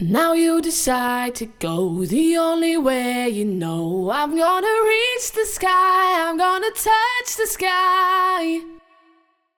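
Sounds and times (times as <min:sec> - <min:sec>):
vocals: 0:00.0 - 0:09.5.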